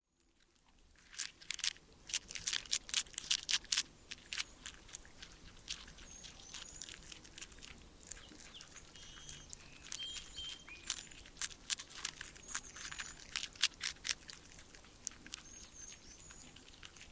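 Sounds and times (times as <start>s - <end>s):
beaver chewing: 0.2s - 17.1s.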